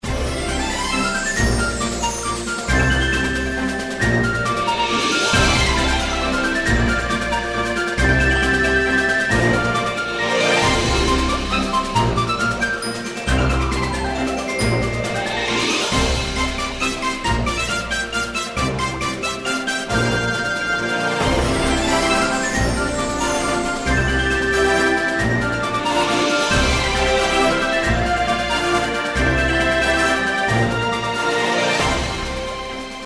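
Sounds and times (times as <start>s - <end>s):
background music: 0.0s - 33.0s.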